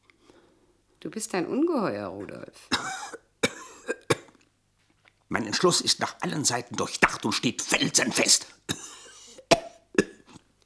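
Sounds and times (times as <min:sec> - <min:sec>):
speech: 0:01.0 - 0:03.3, 0:05.3 - 0:08.9
man coughing: 0:02.7 - 0:04.3, 0:08.7 - 0:10.3.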